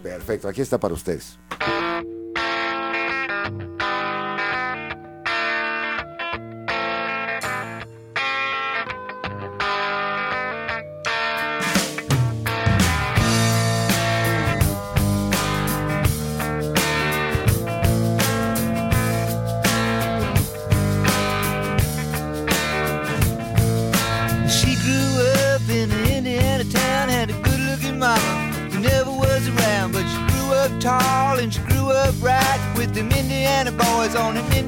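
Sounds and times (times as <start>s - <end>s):
speech: 0.0s - 1.8s
distorted electric guitar riff: 0.0s - 34.6s
bass and steady drums: 11.8s - 34.6s.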